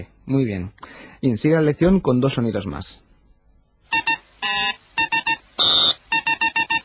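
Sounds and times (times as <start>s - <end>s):
speech: 0.0s - 3.0s
beeps: 3.9s - 6.8s.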